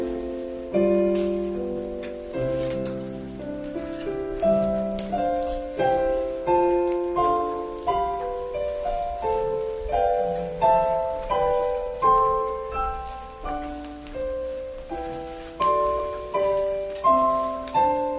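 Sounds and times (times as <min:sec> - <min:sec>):
piano prelude: 0:00.0 - 0:18.1.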